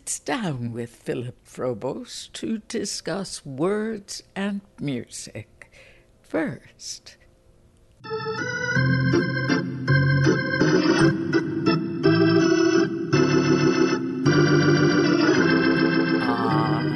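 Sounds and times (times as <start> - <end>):
speech: 0.1 - 5.5, 6.3 - 7.2, 8.0 - 8.6
ballpark organ at an Atlanta Braves baseball game: 8.0 - 16.9.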